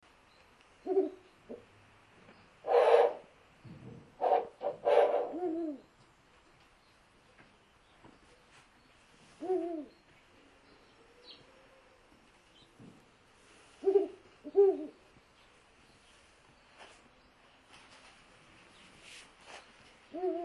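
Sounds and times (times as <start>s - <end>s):
Ural owl giving low hollow hoots: 0.8s - 1.6s, 2.6s - 3.3s, 4.2s - 5.9s, 9.4s - 9.9s, 13.8s - 15.0s, 20.1s - 20.4s.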